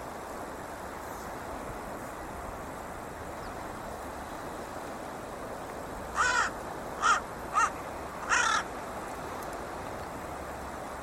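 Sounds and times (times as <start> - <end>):
low hiss: 0.0 - 11.0
bird cawing: 6.1 - 8.7.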